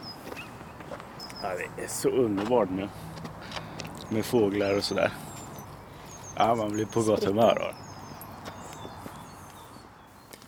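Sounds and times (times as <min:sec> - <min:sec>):
footsteps of man walking with guide dog: 0:00.2 - 0:01.4, 0:02.2 - 0:04.1, 0:08.3 - 0:10.4
speech: 0:01.4 - 0:03.1, 0:04.1 - 0:05.2, 0:06.4 - 0:07.8.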